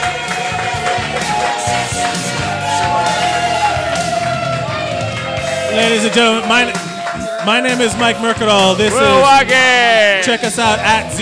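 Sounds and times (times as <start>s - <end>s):
audience applause: 0.0s - 10.4s
speech: 5.8s - 11.2s.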